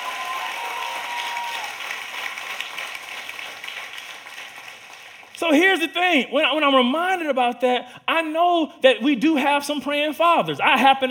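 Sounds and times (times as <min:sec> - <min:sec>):
audience hand clapping: 0:00.0 - 0:05.9
speech: 0:05.4 - 0:11.1.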